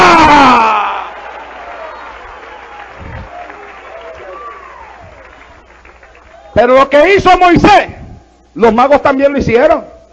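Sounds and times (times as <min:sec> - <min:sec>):
audience applauding: 0:00.4 - 0:06.7
speech: 0:06.6 - 0:08.0, 0:08.6 - 0:09.9.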